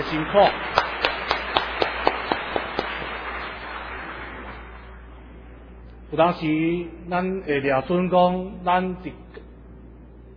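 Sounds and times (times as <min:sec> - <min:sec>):
speech: 0:00.0 - 0:00.8, 0:06.1 - 0:09.2
audience applause: 0:00.0 - 0:04.9.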